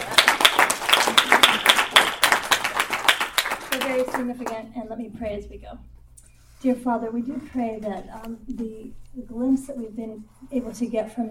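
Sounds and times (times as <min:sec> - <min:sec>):
crowd applauding: 0:00.0 - 0:04.6
speech: 0:04.0 - 0:06.0, 0:06.6 - 0:11.3.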